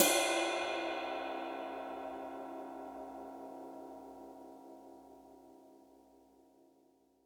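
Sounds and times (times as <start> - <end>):
ride cymbal: 0.0 - 3.2.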